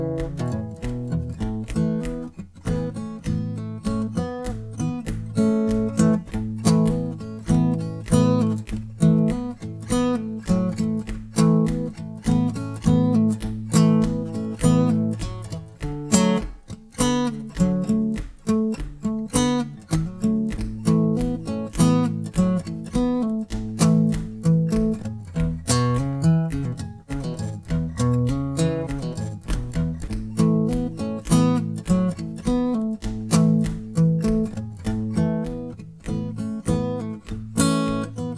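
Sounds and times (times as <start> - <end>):
guitar solo: 0.0 - 38.3.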